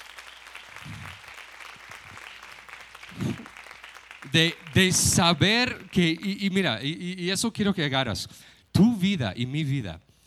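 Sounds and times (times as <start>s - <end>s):
crowd clapping: 0.0s - 7.4s
speech: 4.3s - 10.0s.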